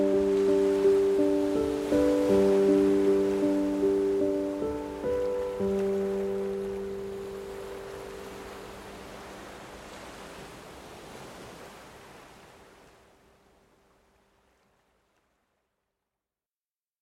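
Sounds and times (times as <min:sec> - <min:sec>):
piano: 0:00.0 - 0:09.9
ocean waves: 0:00.0 - 0:15.4.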